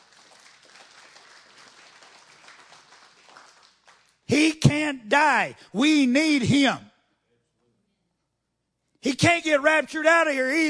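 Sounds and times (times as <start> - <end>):
hand clapping: 0.0 - 4.2
speech: 4.3 - 6.9, 9.0 - 10.6.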